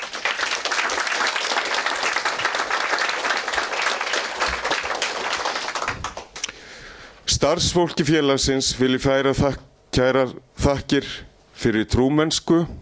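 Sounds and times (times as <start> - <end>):
audience applauding at the annual meeting of an association for the blind: 0.0 - 6.5
speech: 7.4 - 12.8.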